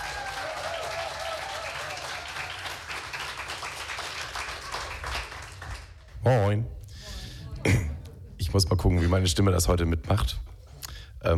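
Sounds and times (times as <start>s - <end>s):
audience applause: 0.0s - 6.1s
speech: 6.3s - 6.8s, 8.5s - 10.5s.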